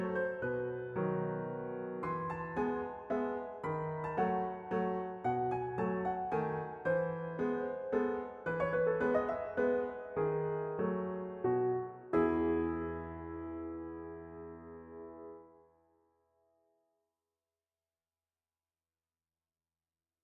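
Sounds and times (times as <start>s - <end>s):
waltz on keyboard: 0.0s - 15.6s.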